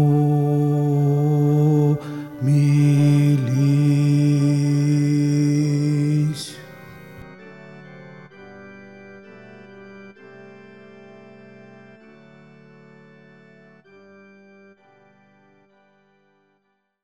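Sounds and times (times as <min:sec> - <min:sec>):
contralto choir singing: 0:00.0 - 0:06.5.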